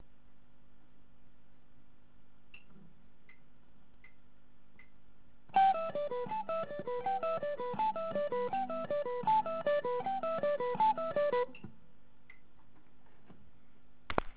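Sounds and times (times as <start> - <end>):
alternate picking: 5.5 - 12.4.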